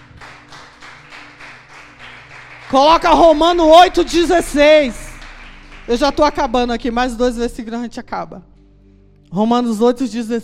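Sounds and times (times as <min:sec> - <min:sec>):
audience applauding: 0:00.0 - 0:07.0
speech: 0:02.7 - 0:05.0, 0:05.9 - 0:08.5, 0:09.3 - 0:10.4.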